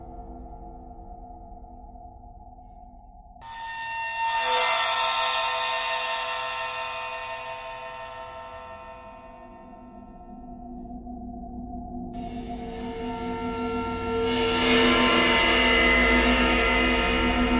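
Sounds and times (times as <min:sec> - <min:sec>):
bowed cymbal: 0:03.4 - 0:10.4, 0:12.2 - 0:17.5.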